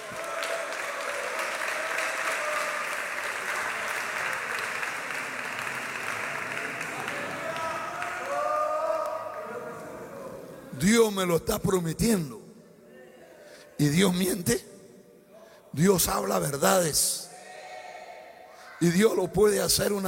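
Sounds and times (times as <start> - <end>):
audience clapping hands: 0.0 - 9.9
speech: 10.8 - 12.4, 13.8 - 14.7, 15.8 - 17.3, 18.8 - 20.0.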